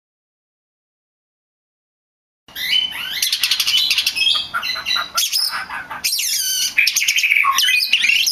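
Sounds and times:
Oriental magpie-robin of the lutung cebu type singing: 2.5s - 8.3s.

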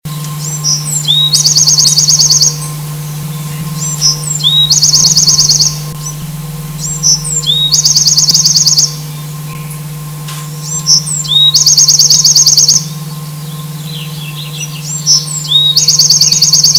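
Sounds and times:
Bewick's wren song with slurred notes and rapid high trill: 0.1s - 16.7s.

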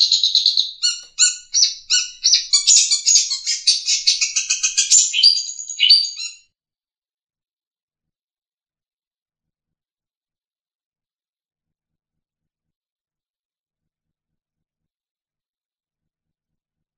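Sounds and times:
long-tailed shrike trilling: 0.0s - 6.4s.

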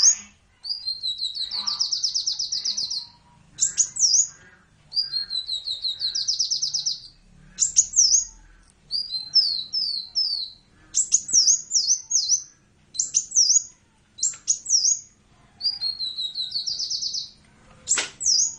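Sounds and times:
hummingbird: 0.0s - 18.5s.

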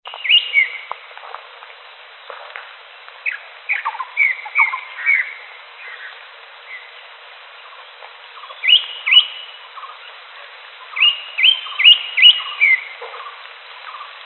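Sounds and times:
wild greater green leafbird song of upswept whistles: 0.0s - 1.1s, 3.2s - 14.2s.

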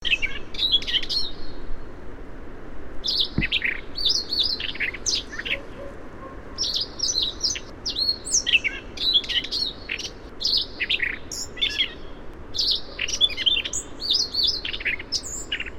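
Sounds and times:
Siberian rubythroat singing a varied song of whistles, chirps and scratchy notes: 0.0s - 1.6s, 3.0s - 15.7s.

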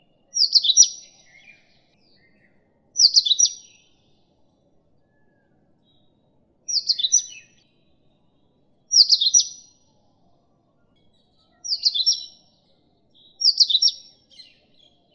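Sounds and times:
Indian oriental magpie-robin whistling: 0.3s - 1.8s, 3.0s - 3.8s, 6.7s - 7.6s, 8.9s - 9.7s, 11.6s - 12.4s, 13.4s - 14.5s.

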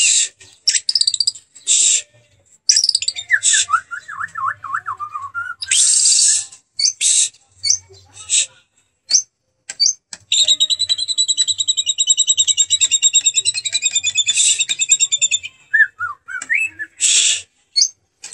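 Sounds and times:
kenari canary singing: 0.4s - 8.1s, 9.1s - 18.3s
lovebird chirping: 0.5s - 1.8s, 2.7s - 7.0s, 7.6s - 7.9s, 9.1s - 16.8s.

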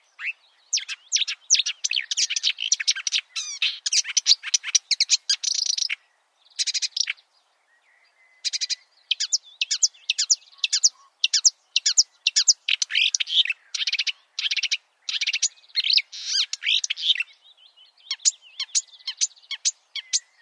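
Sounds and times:
marsh warbler singing: 0.0s - 20.3s.

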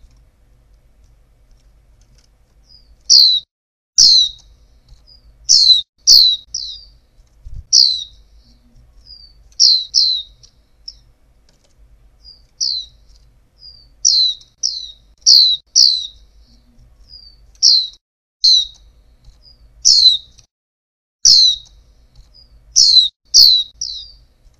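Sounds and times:
female white-eye downward-slurred chirps: 2.6s - 3.4s, 4.0s - 7.0s, 7.7s - 11.1s, 12.2s - 18.8s, 19.4s - 20.4s, 21.3s - 24.2s.

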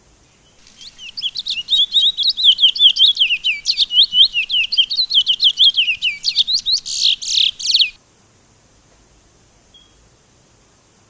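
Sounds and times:
Sunda laughingthrush song of quick high-pitched slurred chirps: 0.6s - 8.0s.

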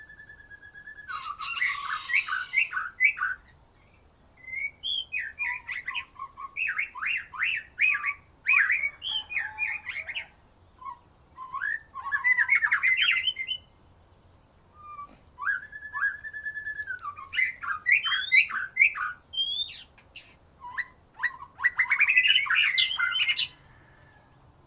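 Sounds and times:
white-rumped shama singing: 0.0s - 24.4s.

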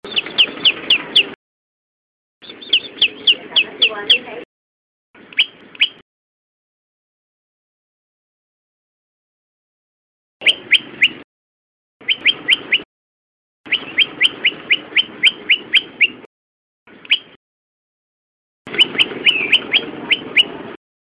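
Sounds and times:
prenjak lumut bird calling: 0.0s - 1.4s, 2.4s - 4.4s, 5.2s - 6.0s, 10.4s - 11.2s, 12.0s - 12.9s, 13.7s - 16.3s, 16.9s - 17.4s, 18.7s - 20.8s.

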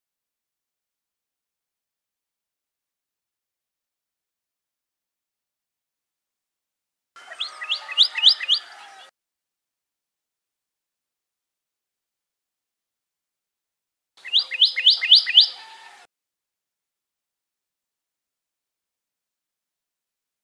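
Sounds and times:
Pyrrhuloxia song with downslurred whistles and rapid trill: 7.3s - 9.0s, 14.2s - 15.9s.

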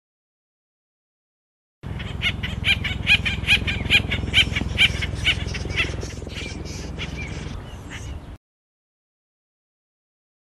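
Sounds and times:
Acorn woodpecker calling in harsh repeated notes: 1.8s - 8.3s.

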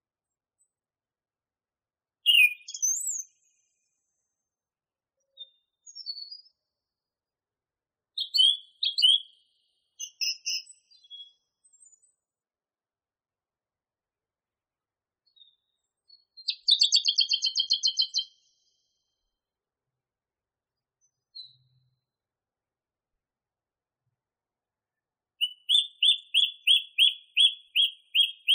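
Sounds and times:
song thrush singing: 2.2s - 3.4s, 8.2s - 11.5s, 15.3s - 18.5s, 25.4s - 28.5s.

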